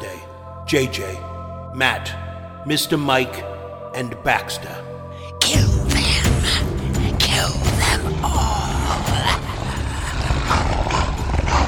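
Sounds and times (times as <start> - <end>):
speech: 0.7 - 5.7
several giant beasts growling: 5.6 - 11.6.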